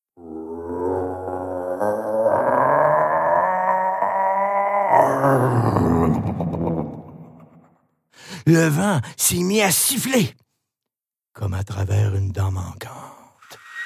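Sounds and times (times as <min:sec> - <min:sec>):
inhuman rumbling growl rising from the ground: 0:00.2 - 0:07.0
speech: 0:05.4 - 0:07.1, 0:08.2 - 0:10.4, 0:11.4 - 0:13.0.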